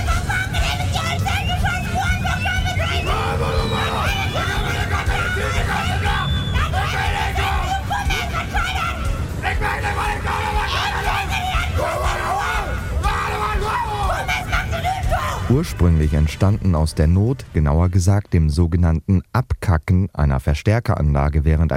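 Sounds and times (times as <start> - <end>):
people yelling at a dialect screaming festival: 0.0 - 16.0
speech: 15.6 - 21.7.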